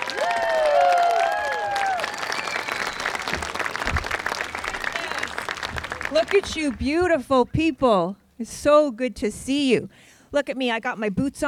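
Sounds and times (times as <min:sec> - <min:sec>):
shrill cheers: 0:00.0 - 0:03.6
audience applause welcoming a speaker to the stage: 0:00.0 - 0:06.8
speech: 0:06.1 - 0:11.4.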